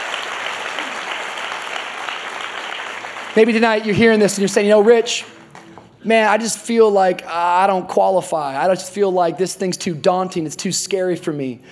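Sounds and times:
audience applause: 0.0s - 4.4s
speech: 3.4s - 5.4s, 6.0s - 11.7s.

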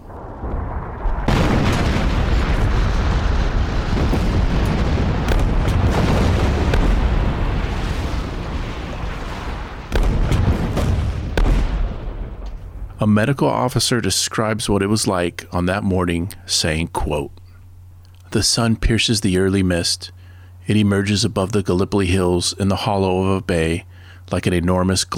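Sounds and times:
artillery bombardment explosions at Kum Kale before the Gallipoli landings: 0.0s - 14.1s
speech: 13.0s - 17.4s, 18.3s - 25.1s.

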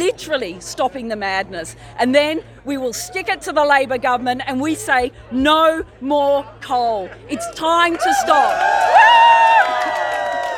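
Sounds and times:
speech: 0.0s - 10.1s
protest crowd cheering: 7.3s - 10.5s.

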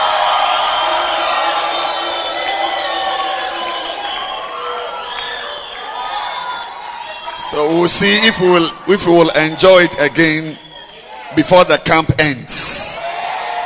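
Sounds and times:
audience at a camp gathering applauding: 0.0s - 7.4s
audience at a camp gathering cheering and shouting: 0.0s - 13.6s
speech: 7.5s - 10.6s, 11.3s - 12.8s.

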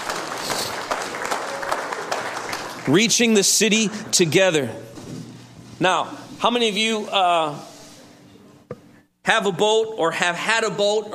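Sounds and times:
round of applause for volunteers at a church gathering: 0.0s - 4.0s
speech: 2.8s - 5.0s, 5.8s - 7.7s, 9.3s - 11.1s.

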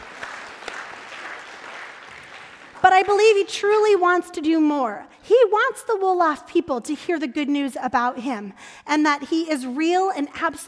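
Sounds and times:
audience clapping: 0.0s - 3.5s
speech: 2.8s - 10.6s.

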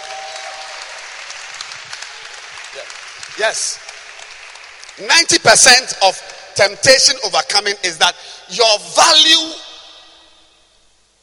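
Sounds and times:
audience clapping hands: 0.0s - 6.4s
speech: 2.8s - 3.9s, 5.0s - 9.6s.

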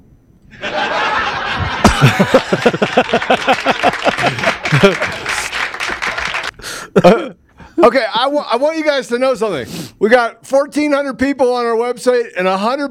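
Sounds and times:
laughter: 0.5s - 7.2s
applause: 1.8s - 6.6s
speech: 2.0s - 5.2s, 7.0s - 12.8s.

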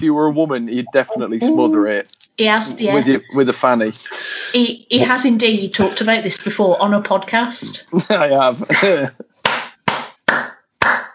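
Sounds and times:
speech: 0.0s - 9.4s
laughter: 0.4s - 2.0s, 2.7s - 4.4s, 7.9s - 9.3s
loud hand claps close to the microphone: 9.4s - 11.1s.

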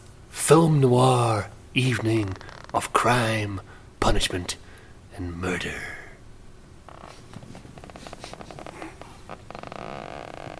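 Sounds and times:
speech: 0.5s - 4.6s, 5.2s - 6.0s
chair creaking: 2.2s - 2.8s, 6.8s - 10.5s.

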